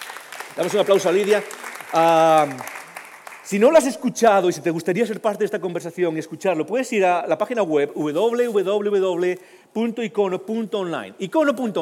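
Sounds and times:
audience applause: 0:00.0 - 0:03.8
speech: 0:00.6 - 0:02.7, 0:03.5 - 0:11.8.

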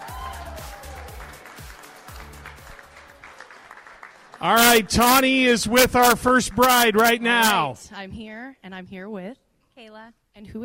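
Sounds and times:
audience applause: 0:00.0 - 0:07.7
speech: 0:04.4 - 0:10.6.

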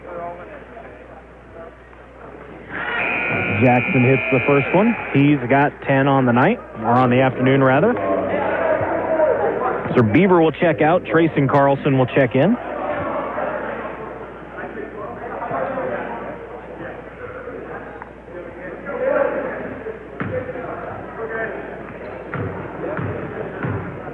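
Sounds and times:
crowd murmur: 0:00.0 - 0:11.2, 0:12.4 - 0:24.1
speech: 0:03.6 - 0:08.1, 0:10.0 - 0:12.6
basketball dribbled on a court during a game: 0:22.3 - 0:23.9.

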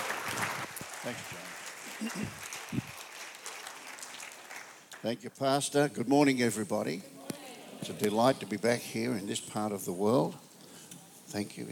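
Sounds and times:
congregation applauding a guest speaker at a morning church service: 0:00.0 - 0:05.2
speech: 0:01.0 - 0:02.9, 0:05.0 - 0:07.2, 0:07.8 - 0:10.4, 0:11.3 - 0:11.7.

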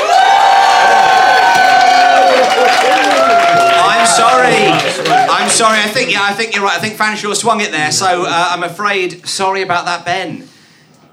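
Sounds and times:
audience applauding: 0:00.0 - 0:06.4
speech: 0:05.5 - 0:10.5.

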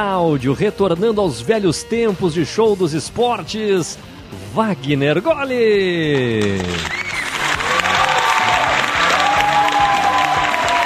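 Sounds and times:
speech: 0:00.0 - 0:07.0
crowd applauding at a festival: 0:06.2 - 0:10.8
cheering: 0:06.5 - 0:10.8
whistles: 0:06.8 - 0:07.5.

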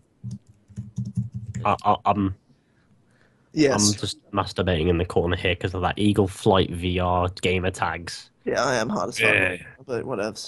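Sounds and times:
typing on a computer keyboard: 0:00.3 - 0:01.6
faint voice-like murmur: 0:01.6 - 0:02.3, 0:03.6 - 0:10.4
speech: 0:01.6 - 0:02.4, 0:03.6 - 0:10.4.

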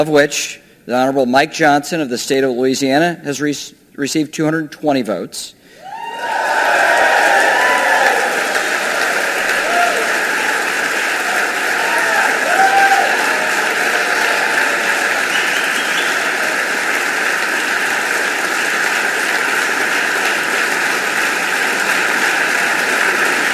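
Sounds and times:
speech: 0:00.0 - 0:05.7
applause in the House chamber: 0:05.8 - 0:23.5.

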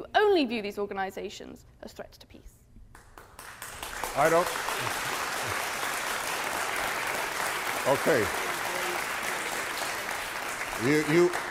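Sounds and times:
speech: 0:00.2 - 0:02.6, 0:04.2 - 0:05.6, 0:07.8 - 0:08.4, 0:10.8 - 0:11.4
audience applause: 0:03.2 - 0:11.4.

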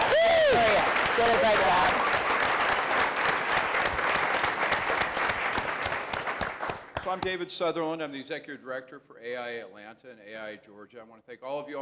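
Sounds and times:
audience applause for a panel and moderator: 0:00.0 - 0:07.3
speech: 0:07.1 - 0:11.7.

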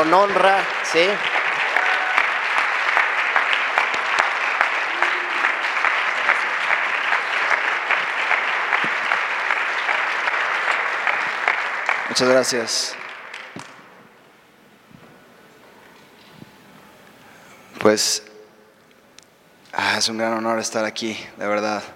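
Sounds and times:
speech: 0:00.0 - 0:01.4, 0:12.2 - 0:13.0, 0:17.9 - 0:18.3, 0:20.0 - 0:21.9
audience applause: 0:00.0 - 0:13.8.

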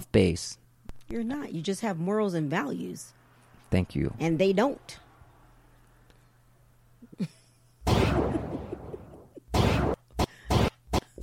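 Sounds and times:
speech: 0:00.1 - 0:05.0
voice imitating gunshots: 0:09.5 - 0:11.2.

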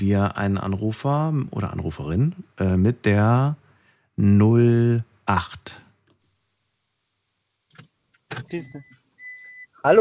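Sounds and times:
speech: 0:00.0 - 0:03.6, 0:04.2 - 0:05.8, 0:08.3 - 0:09.0
car parking beeper: 0:08.4 - 0:09.9.

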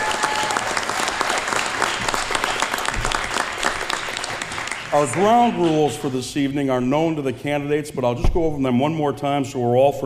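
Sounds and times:
audience applause: 0:00.0 - 0:06.1
speech: 0:04.9 - 0:10.0.

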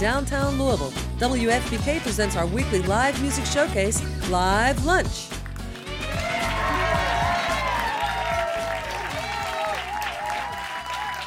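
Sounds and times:
speech: 0:00.0 - 0:05.4
full house audience applause at a downtown Louisville live music showcase: 0:05.6 - 0:11.2.

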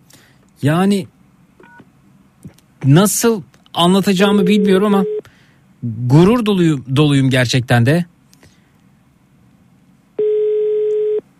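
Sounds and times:
speech: 0:00.6 - 0:01.2, 0:02.8 - 0:05.1, 0:05.8 - 0:08.1
telephone ringback tone while calling a listener: 0:10.2 - 0:11.2.

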